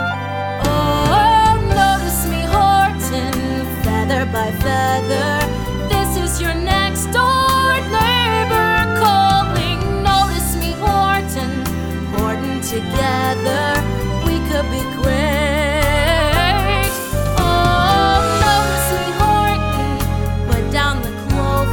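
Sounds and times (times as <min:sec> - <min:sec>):
person singing: 0:00.0 - 0:21.7.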